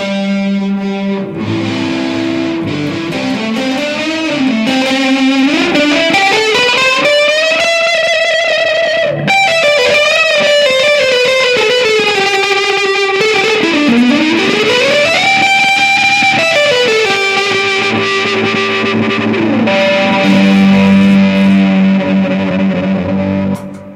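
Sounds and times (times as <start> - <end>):
electric guitar through chorus and fuzz pedals: 0.0 - 23.9.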